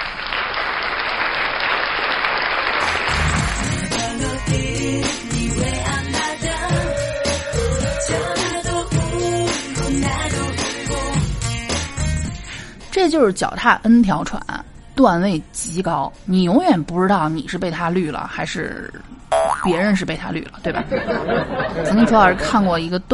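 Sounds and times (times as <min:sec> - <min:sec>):
audience applause: 0:00.0 - 0:03.7
loud rhythmic music with a steady beat and sustained melodic tones: 0:02.8 - 0:12.5
speech: 0:13.0 - 0:23.1
laughter: 0:20.7 - 0:22.5.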